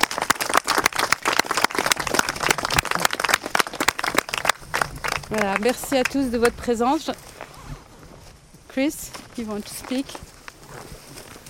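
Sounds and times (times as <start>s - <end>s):
audience applause: 0.0s - 6.3s
speech: 5.3s - 7.2s, 8.8s - 10.3s.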